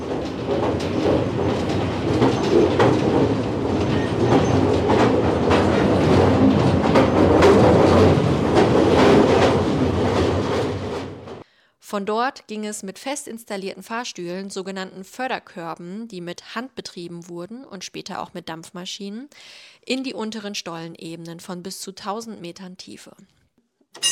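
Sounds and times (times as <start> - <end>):
mine railway train running on tracks: 0.0 - 11.4
speech: 0.5 - 1.3, 11.9 - 24.1.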